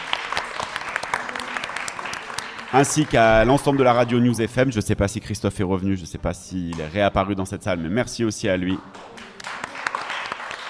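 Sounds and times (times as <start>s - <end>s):
audience applause at a live event in a hall: 0.0s - 4.3s, 8.8s - 10.6s
speech: 2.7s - 9.2s.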